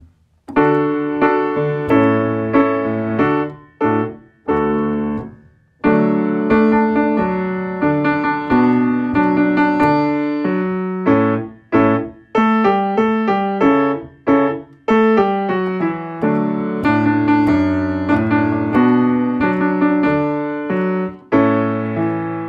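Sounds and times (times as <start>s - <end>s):
piano: 0.0s - 22.4s.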